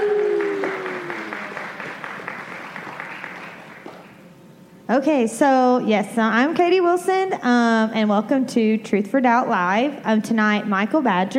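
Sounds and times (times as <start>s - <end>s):
audience applause welcoming a speaker at a live studio event: 0.0s - 4.1s
speech: 4.9s - 11.3s.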